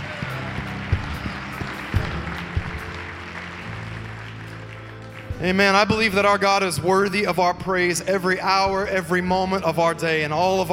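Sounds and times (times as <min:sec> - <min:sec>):
people clapping: 0:00.0 - 0:06.7
speech: 0:05.4 - 0:10.7.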